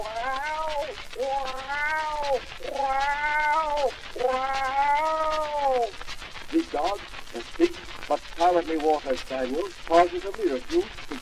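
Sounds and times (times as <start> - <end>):
cat yowling: 0.0 - 5.9
speech: 1.2 - 4.8, 6.7 - 11.2.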